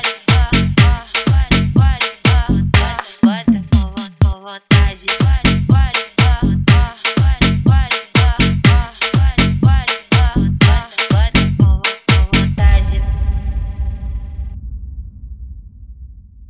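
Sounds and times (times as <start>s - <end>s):
mega funk automotivo music: 0.0s - 13.1s.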